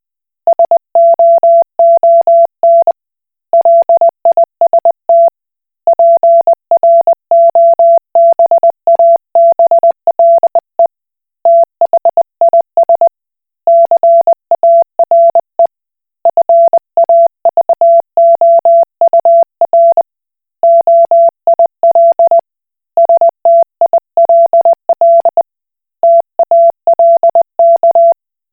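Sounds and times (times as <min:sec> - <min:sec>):
Koch Morse code beeps: 0:00.5 - 0:02.9, 0:03.6 - 0:05.3, 0:05.9 - 0:10.6, 0:11.5 - 0:13.1, 0:13.7 - 0:15.4, 0:16.3 - 0:20.0, 0:20.6 - 0:22.4, 0:23.0 - 0:25.4, 0:26.0 - 0:28.2.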